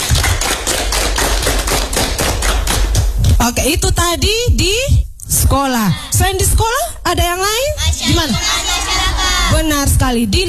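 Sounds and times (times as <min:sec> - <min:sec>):
classroom applause: 0:00.0 - 0:03.4
speech: 0:03.6 - 0:08.7, 0:09.5 - 0:10.4.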